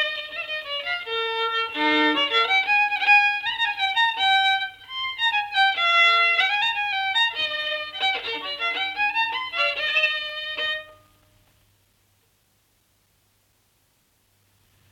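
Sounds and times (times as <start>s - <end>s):
folk violin from Ruhnu: 0.0s - 11.3s.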